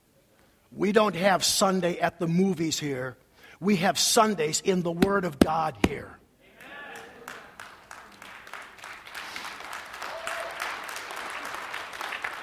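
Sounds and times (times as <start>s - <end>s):
speech: 0.7s - 6.2s
crowd applauding softly: 6.5s - 12.4s.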